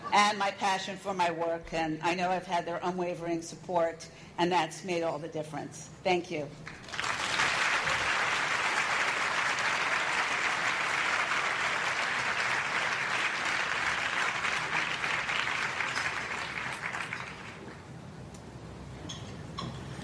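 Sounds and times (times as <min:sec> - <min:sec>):
speech: 0:00.2 - 0:06.9
audience applause: 0:06.7 - 0:17.7.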